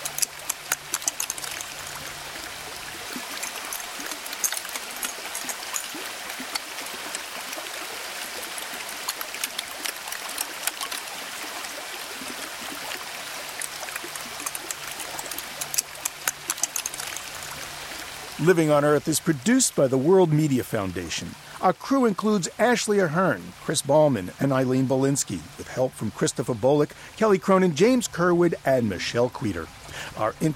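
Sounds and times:
glacier ice melting at Alaska's Columbia Glacier: 0.0s - 19.6s
trickling watery hiss of melting glacier ice: 0.0s - 27.4s, 29.5s - 30.5s
speech: 18.4s - 30.5s.

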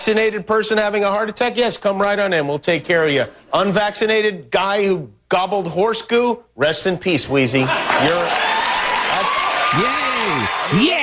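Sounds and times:
speech: 0.0s - 8.6s, 9.7s - 10.0s, 10.7s - 11.0s
crowd applauding: 7.7s - 11.0s.

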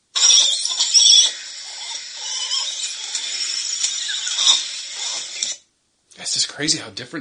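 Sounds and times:
langur monkey squeaks and squeals: 0.2s - 5.6s
speech: 6.3s - 7.2s.

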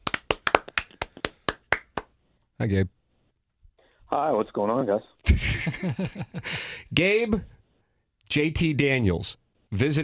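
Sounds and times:
crowd clapping: 0.0s - 2.2s
speech: 2.6s - 3.0s, 4.1s - 7.5s, 8.3s - 10.0s
laughter: 5.3s - 6.6s.

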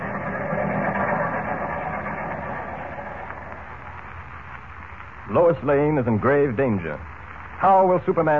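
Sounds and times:
train arriving at station platform: 0.0s - 3.8s
speech: 5.3s - 8.3s.

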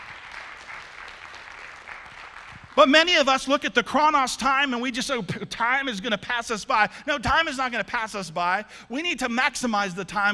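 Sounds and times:
audience applause: 0.0s - 2.9s
speech: 2.8s - 10.3s.

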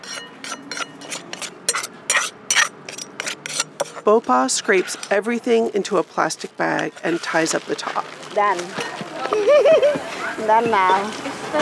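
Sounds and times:
pestle pounding papaya salad ingredients in a mortar: 0.0s - 4.1s
speech: 4.0s - 11.6s
laughter: 9.1s - 10.5s.

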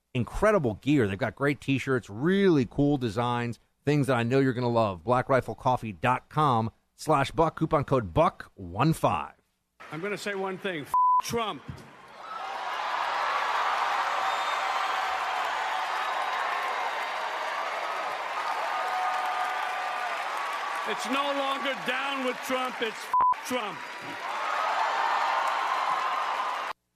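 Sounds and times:
speech: 0.2s - 11.9s, 20.9s - 24.4s
crowd cheering at the Tony Awards: 9.8s - 26.8s.

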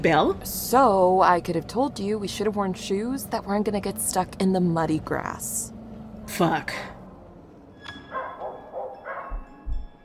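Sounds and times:
speech: 0.0s - 7.0s
dog barking: 8.1s - 9.5s.

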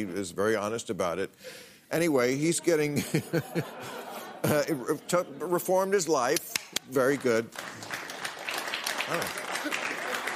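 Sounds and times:
speech: 0.0s - 8.0s, 9.1s - 9.8s
laughter: 2.4s - 5.7s, 9.0s - 10.3s
audience applause: 7.0s - 10.3s.

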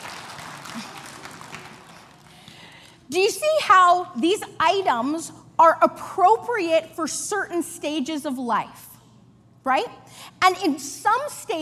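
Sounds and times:
group applauding: 0.0s - 2.6s
speech: 0.7s - 0.9s, 3.1s - 8.9s, 9.6s - 11.6s.

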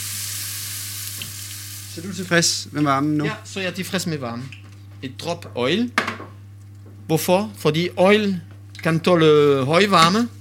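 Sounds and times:
water sizzling in a hot pan: 0.0s - 2.2s
low electrical hum: 0.0s - 10.3s
speech: 2.0s - 6.4s, 7.1s - 10.3s.

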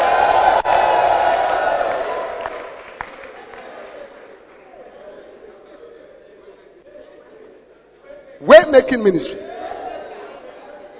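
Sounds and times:
audience clapping: 0.0s - 4.9s
speech: 8.8s - 9.4s.

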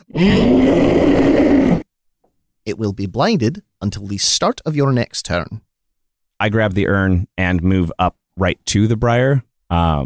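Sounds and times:
voice imitating a creature howling in pain: 0.0s - 1.8s
speech: 0.2s - 1.4s, 2.8s - 5.7s, 6.4s - 10.0s.

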